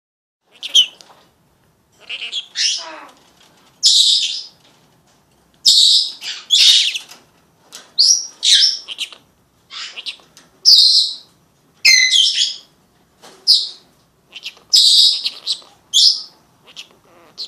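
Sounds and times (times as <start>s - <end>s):
Senegal parrot squawking: 0.5s - 1.0s, 2.0s - 3.2s, 5.7s - 7.0s, 8.0s - 12.7s, 13.5s - 17.4s.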